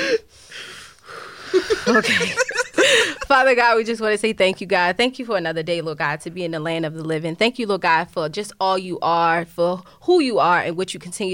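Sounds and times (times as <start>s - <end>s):
deep breath taken at the start of a prayer: 0.0s - 1.9s
laughter: 1.5s - 3.3s
speech: 1.8s - 2.6s, 3.3s - 11.3s.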